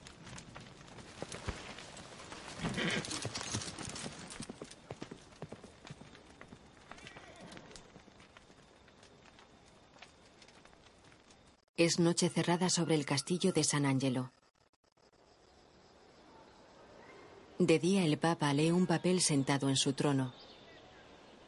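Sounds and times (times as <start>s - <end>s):
hooves of a horse ridden out of a courtyard: 0.0s - 11.6s
speech: 11.8s - 14.4s, 17.6s - 20.6s.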